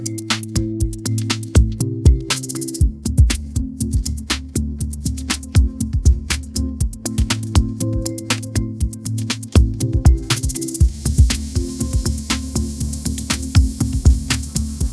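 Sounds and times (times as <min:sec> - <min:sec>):
upbeat pop melody ringtone: 0:00.0 - 0:14.9.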